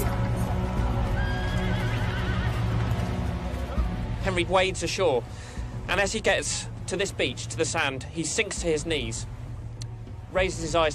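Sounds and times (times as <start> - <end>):
hooves clopping on beach: 0.0 - 4.4
horse whinnying: 1.2 - 2.8
speech: 4.2 - 9.4, 10.3 - 10.9.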